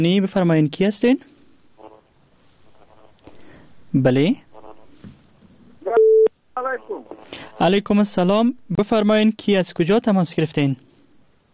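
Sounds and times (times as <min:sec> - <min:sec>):
speech: 0:00.0 - 0:01.3, 0:03.9 - 0:04.4, 0:06.6 - 0:10.9
faint garbled voice-like noise on the telephone line: 0:01.8 - 0:03.2, 0:04.0 - 0:05.0, 0:05.8 - 0:07.8
telephone line beep after a call is cut off: 0:05.9 - 0:07.0.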